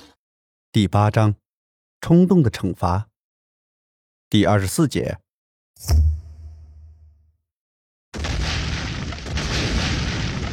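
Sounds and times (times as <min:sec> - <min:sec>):
speech: 0:00.7 - 0:01.4, 0:02.0 - 0:03.1, 0:04.3 - 0:05.2, 0:05.8 - 0:06.2
huge explosion: 0:08.2 - 0:10.5.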